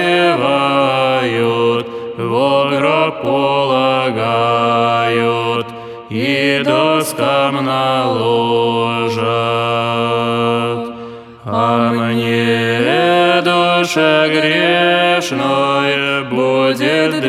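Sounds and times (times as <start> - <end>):
Old Believer Pomorian community choir singing: 0.0 - 17.2.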